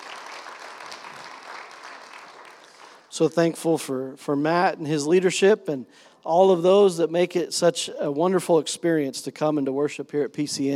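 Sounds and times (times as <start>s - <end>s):
crowd applauding: 0.0s - 3.2s
speech: 3.1s - 10.7s.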